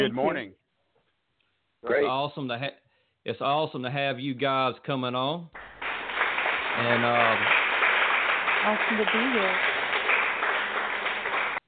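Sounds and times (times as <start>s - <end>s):
speech: 0.0s - 0.6s, 1.8s - 5.7s, 6.8s - 7.6s, 8.6s - 9.7s
radio clap: 5.6s - 11.6s.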